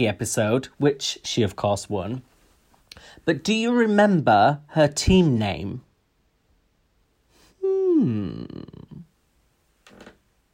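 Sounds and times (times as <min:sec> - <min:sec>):
speech: 0:00.0 - 0:02.3, 0:03.0 - 0:05.9, 0:07.6 - 0:08.7
soft rustle: 0:02.2 - 0:02.9
chair creaking: 0:09.8 - 0:10.2.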